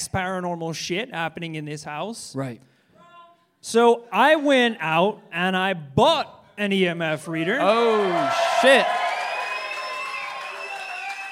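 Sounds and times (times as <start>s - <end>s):
speech: 0.0s - 2.7s, 3.6s - 9.0s
audience clapping: 7.6s - 11.3s.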